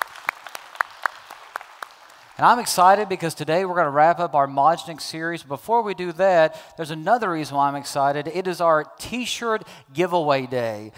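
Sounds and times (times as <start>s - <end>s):
church congregation clapping to welcome guests: 0.0s - 3.2s
speech: 2.4s - 10.9s.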